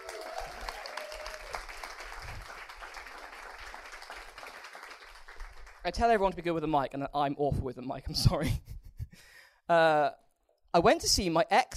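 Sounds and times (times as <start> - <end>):
audience applause: 0.0 - 5.9
speech: 5.8 - 8.7, 9.7 - 11.7.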